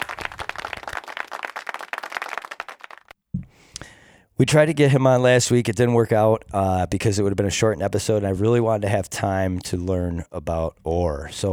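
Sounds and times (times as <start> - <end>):
small group clapping: 0.0 - 3.2
speech: 3.8 - 11.5.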